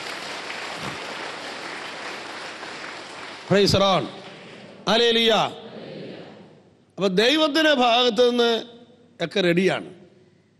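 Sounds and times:
church congregation clapping hands after a blessing: 0:00.0 - 0:04.8
speech: 0:03.5 - 0:04.2, 0:04.8 - 0:05.6, 0:07.0 - 0:10.0.

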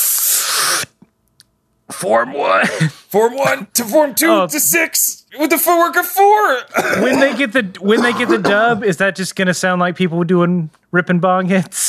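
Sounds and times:
person imitating hissing concentration breathing: 0:00.0 - 0:01.0
speech: 0:02.0 - 0:11.8.

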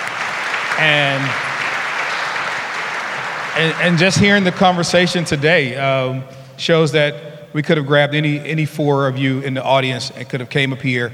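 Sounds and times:
audience applause: 0:00.0 - 0:05.7
speech: 0:00.8 - 0:01.5, 0:03.6 - 0:11.1.

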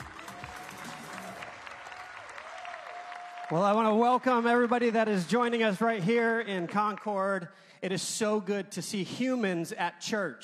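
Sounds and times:
church audience applauding to welcome a guest speaker in Concord: 0:00.0 - 0:07.4
speech: 0:03.5 - 0:10.4.

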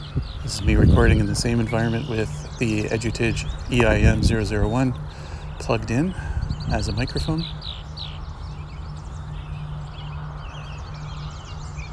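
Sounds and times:
American robins singing: 0:00.0 - 0:11.9
Canada geese calling overhead: 0:00.0 - 0:11.9
speech: 0:00.2 - 0:07.6.

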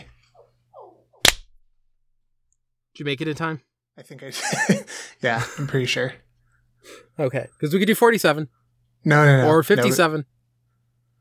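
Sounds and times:
hand clap for recording sync: 0:01.2 - 0:01.5
speech: 0:03.0 - 0:06.2, 0:06.8 - 0:10.3
laughter: 0:04.0 - 0:06.2.

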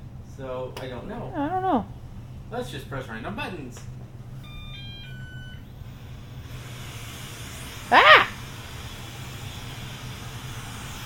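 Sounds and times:
speech: 0:00.4 - 0:04.0
robot vacuum running high-powered spot cleaning: 0:04.4 - 0:11.0.

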